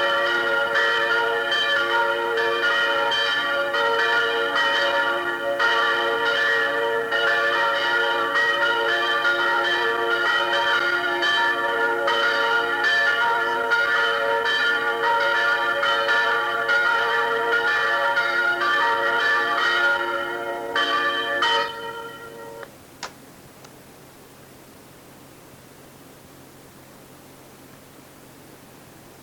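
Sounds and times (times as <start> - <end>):
church bells ringing: 0.0 - 22.7.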